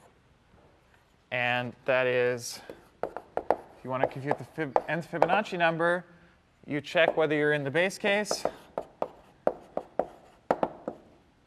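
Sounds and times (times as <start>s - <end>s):
speech: 1.3s - 2.8s, 3.8s - 8.6s
writing on a board during a lecture: 2.7s - 5.4s, 8.1s - 11.1s.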